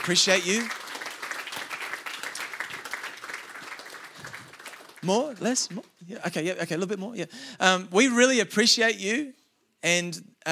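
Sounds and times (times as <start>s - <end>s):
speech: 0.0s - 0.9s, 5.0s - 10.5s
church audience clapping: 0.0s - 6.4s.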